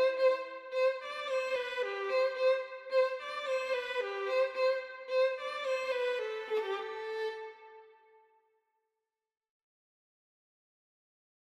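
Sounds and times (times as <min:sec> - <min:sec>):
violin: 0:00.0 - 0:08.4.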